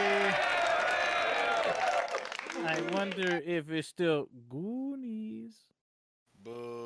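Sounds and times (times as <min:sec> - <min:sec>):
small group applauding and cheering: 0:00.0 - 0:03.5
speech: 0:02.7 - 0:04.8.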